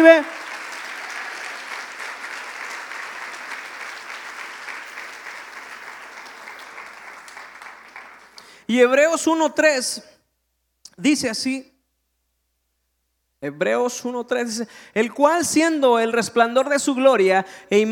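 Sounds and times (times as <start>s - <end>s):
speech: 0.0s - 0.4s, 8.7s - 10.2s, 11.0s - 11.7s, 13.4s - 17.8s
audience applauding: 0.0s - 8.6s.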